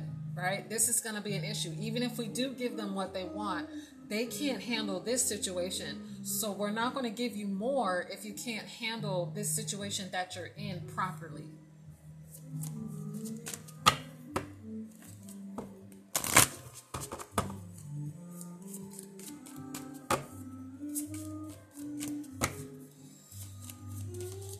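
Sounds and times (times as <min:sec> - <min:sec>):
faint steady tonal background: 0:00.0 - 0:24.5
speech: 0:00.4 - 0:11.6
tarot cards being shuffled: 0:12.3 - 0:22.7, 0:23.4 - 0:24.5.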